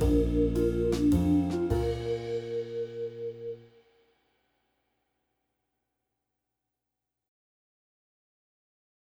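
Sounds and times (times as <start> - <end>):
jazz waltz backing music: 0.0 - 3.6.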